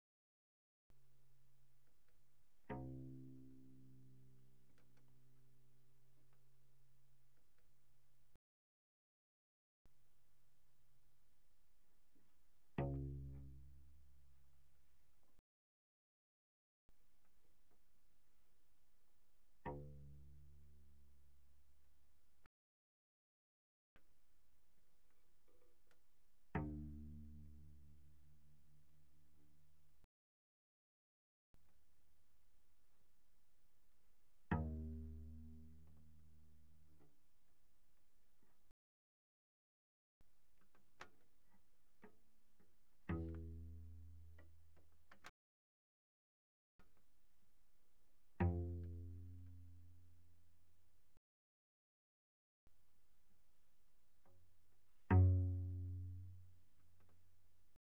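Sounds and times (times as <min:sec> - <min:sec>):
cello pizzicato pianissimo on C string: 0:02.4 - 0:06.6, 0:12.6 - 0:14.4, 0:25.6 - 0:29.7, 0:34.4 - 0:37.2, 0:41.0 - 0:45.3, 0:48.3 - 0:50.4, 0:54.2 - 0:57.5.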